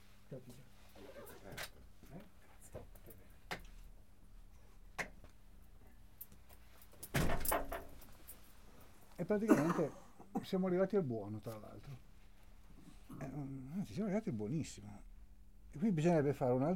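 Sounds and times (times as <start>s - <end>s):
speech: 0.3s - 0.6s, 9.3s - 12.1s, 13.2s - 15.1s, 15.7s - 16.7s
door being opened: 7.1s - 8.1s.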